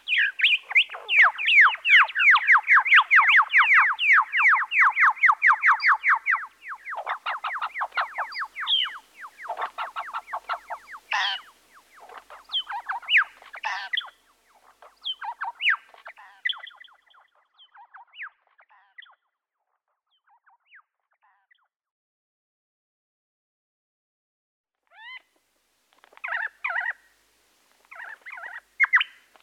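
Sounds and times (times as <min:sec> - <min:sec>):
birds chirping: 0:00.0 - 0:19.2, 0:26.0 - 0:27.1, 0:27.8 - 0:29.4.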